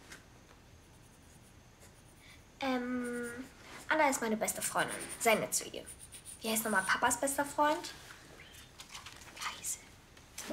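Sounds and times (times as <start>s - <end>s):
pen scratching while writing a list: 3.0s - 3.5s, 4.5s - 7.3s
speech: 4.0s - 8.0s.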